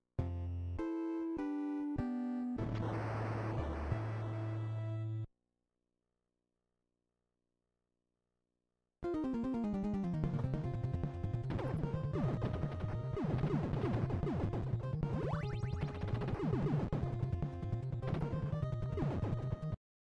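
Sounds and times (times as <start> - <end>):
NES chiptune game music: 0.2 - 5.3, 9.0 - 19.8.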